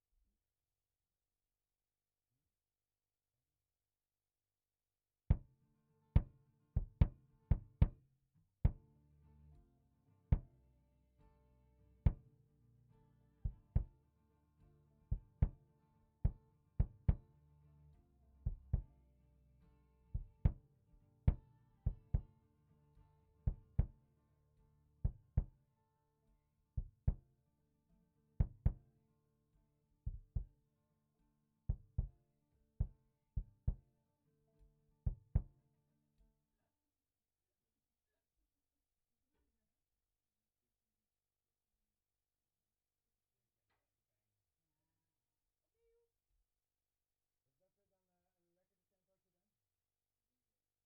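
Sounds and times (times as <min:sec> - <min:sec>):
kick drum: 0:05.3 - 0:05.5, 0:06.2 - 0:08.0, 0:08.6 - 0:08.9, 0:10.3 - 0:10.6, 0:12.1 - 0:12.3, 0:13.4 - 0:14.0, 0:15.1 - 0:17.4, 0:18.5 - 0:19.0, 0:20.2 - 0:20.7, 0:21.3 - 0:22.4, 0:23.5 - 0:24.0, 0:25.0 - 0:25.6, 0:26.8 - 0:27.3, 0:28.4 - 0:28.9, 0:30.1 - 0:30.6, 0:31.7 - 0:32.2, 0:32.8 - 0:33.9, 0:35.1 - 0:35.6.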